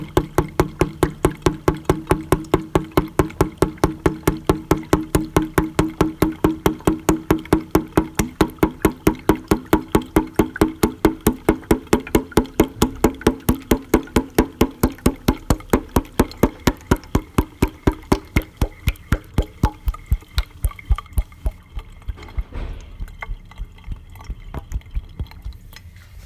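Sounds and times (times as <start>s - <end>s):
water jug: 0.0s - 26.2s.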